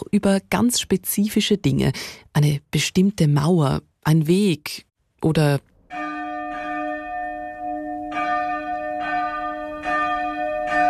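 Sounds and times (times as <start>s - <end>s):
speech: 0.1s - 5.7s
church bells ringing: 5.9s - 10.8s.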